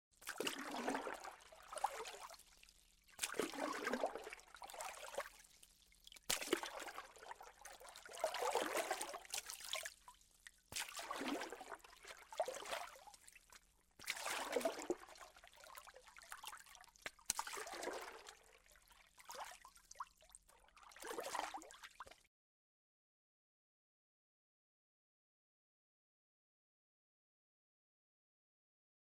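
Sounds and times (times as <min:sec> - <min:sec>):
light splashes and lapping of water: 0:00.2 - 0:02.6, 0:03.2 - 0:05.4, 0:06.1 - 0:10.1, 0:10.8 - 0:13.3, 0:14.0 - 0:18.5.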